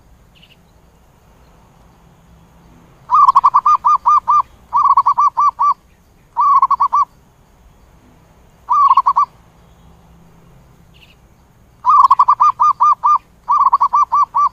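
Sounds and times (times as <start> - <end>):
zebra dove cooing: 3.1 - 5.8, 6.4 - 7.1, 8.7 - 9.4, 11.8 - 14.5.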